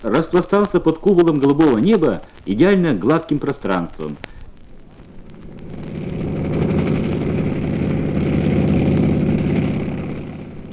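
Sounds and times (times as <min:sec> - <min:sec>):
speech: 0:00.0 - 0:04.3
Po-2 biplane flying overhead: 0:04.9 - 0:10.7.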